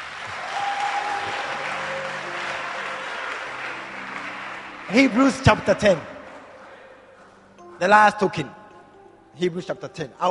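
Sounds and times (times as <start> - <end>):
audience clapping: 0.0 - 7.3
speech: 4.9 - 6.1, 7.8 - 8.6, 9.4 - 10.2.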